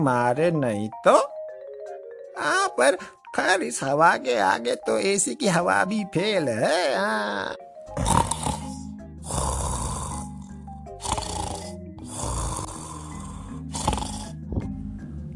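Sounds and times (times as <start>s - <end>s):
speech: 0.0s - 1.3s, 2.4s - 8.2s
snoring: 7.9s - 14.7s.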